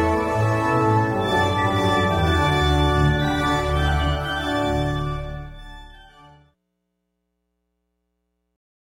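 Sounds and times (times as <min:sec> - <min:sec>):
organ playing: 0:00.0 - 0:06.6.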